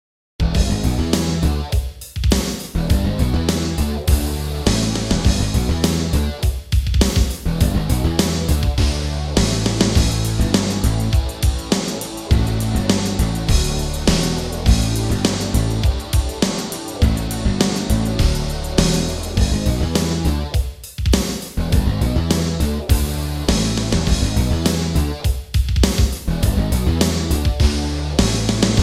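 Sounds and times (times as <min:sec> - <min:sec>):
metal music: 0:00.4 - 0:28.8.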